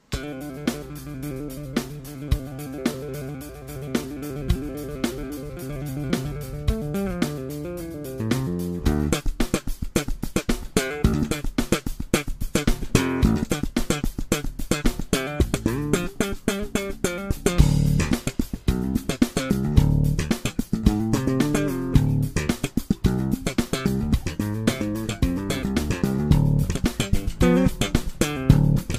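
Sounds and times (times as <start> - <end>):
extreme slap bass: 0.2 - 28.9.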